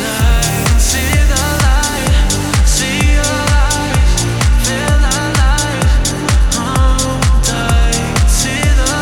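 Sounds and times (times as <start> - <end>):
sad stutter house music: 0.2 - 9.0.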